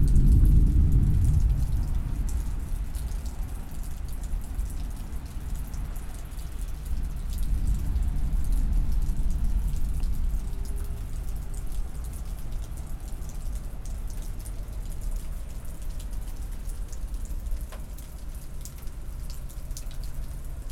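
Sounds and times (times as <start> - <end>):
October thunder rumbling in Midland, Texas: 0.0 - 3.7, 7.4 - 11.7
steady rain pattering in Midland, Texas: 0.0 - 20.7.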